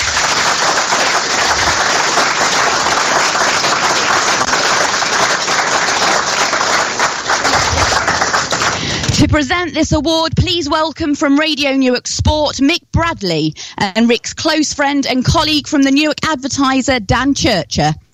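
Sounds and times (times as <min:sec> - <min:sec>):
applause: 0:00.0 - 0:09.3
speech: 0:09.3 - 0:18.0.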